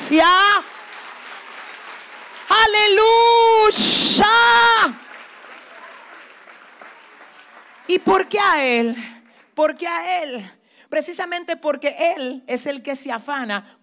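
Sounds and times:
audience applause: 0.0 - 9.4
speech: 0.1 - 0.8, 2.6 - 5.0, 7.9 - 13.8.

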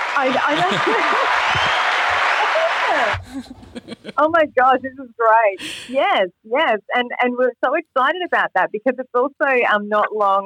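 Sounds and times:
laughter: 0.0 - 1.6, 2.2 - 4.2
applause: 0.0 - 3.4
speech: 0.2 - 1.7, 2.9 - 10.4.

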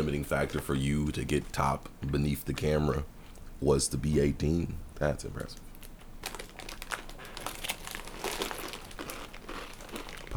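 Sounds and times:
speech: 0.0 - 5.7
chomping and crunching on snack food: 5.4 - 10.3.

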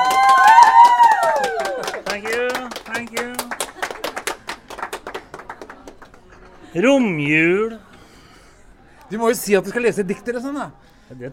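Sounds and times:
voices cheering and whooping: 0.0 - 2.1
audience applause: 0.0 - 6.8
speech: 6.8 - 7.8, 9.1 - 11.3.

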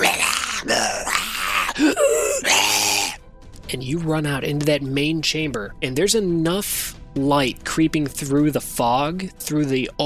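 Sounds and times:
voice imitating screeching monsters: 0.0 - 3.2
speech: 3.7 - 10.0.

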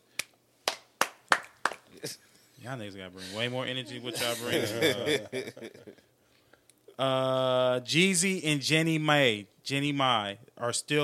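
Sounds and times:
clapping: 0.2 - 1.9
speech: 2.0 - 6.1, 7.0 - 11.0
laughter: 3.2 - 6.0.

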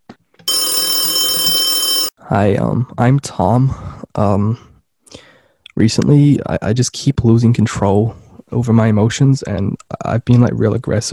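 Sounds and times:
telephone ringing: 0.5 - 2.2
speech: 2.3 - 4.7, 5.8 - 11.1.

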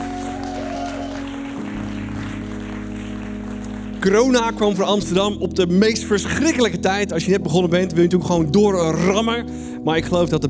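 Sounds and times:
big applause: 0.0 - 4.9
speech: 4.0 - 10.4.

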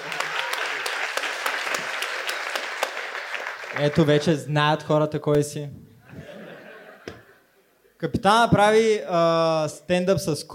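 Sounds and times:
audience applauding at a comedy roast: 0.0 - 4.4
speech: 3.8 - 5.8, 8.0 - 10.5
laughter: 6.0 - 7.7.

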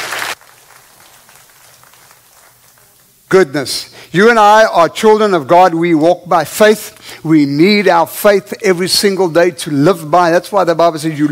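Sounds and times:
crowd clapping: 0.0 - 3.0
speech: 3.3 - 11.2.

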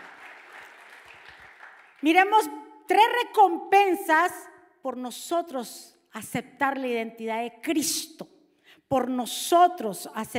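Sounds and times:
audience applause: 0.0 - 2.0
speech: 2.0 - 8.3, 8.9 - 10.3.

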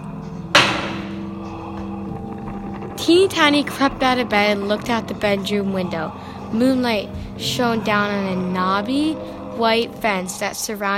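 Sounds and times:
door closing: 0.5 - 3.0
speech: 3.0 - 10.9.

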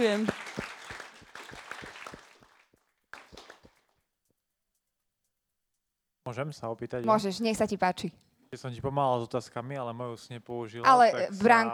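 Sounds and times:
speech: 0.0 - 0.4, 6.3 - 11.7
audience applause: 0.0 - 3.7.

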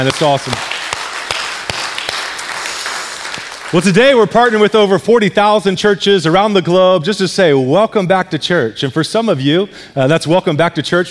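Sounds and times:
speech: 0.0 - 0.7, 3.7 - 11.1
church service audience applause: 0.0 - 4.0.

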